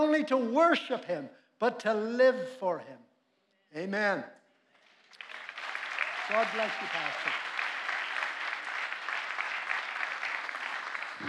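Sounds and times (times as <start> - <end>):
speech: 0.0 - 3.1, 3.7 - 4.4, 6.3 - 7.4
audience applause: 4.9 - 11.2.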